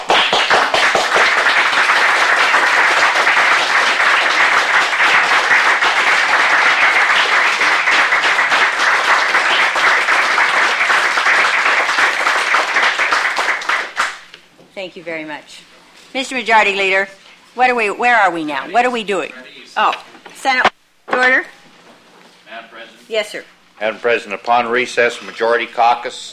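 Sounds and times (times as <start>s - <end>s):
applause in the chamber: 0.0s - 14.3s
speech: 15.0s - 21.5s, 23.1s - 26.3s.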